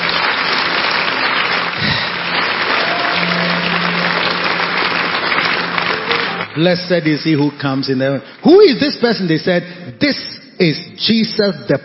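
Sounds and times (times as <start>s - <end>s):
audience applause: 0.0s - 8.7s
speech: 6.6s - 11.8s.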